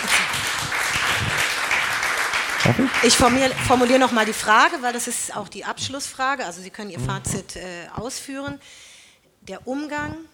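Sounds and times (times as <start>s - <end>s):
audience applause: 0.0s - 4.4s
speech: 2.6s - 10.3s.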